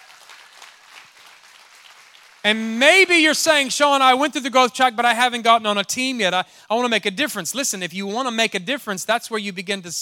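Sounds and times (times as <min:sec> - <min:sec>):
audience clapping: 0:00.0 - 0:03.1
speech: 0:02.4 - 0:10.0.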